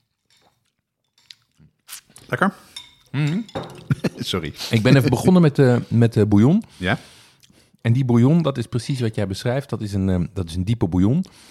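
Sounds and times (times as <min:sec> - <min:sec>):
chewing and crunching rice noodles with beef, red onion, herbs and lime: 0:00.0 - 0:03.2
speech: 0:02.3 - 0:07.2, 0:07.8 - 0:11.4
laughter: 0:03.8 - 0:05.8.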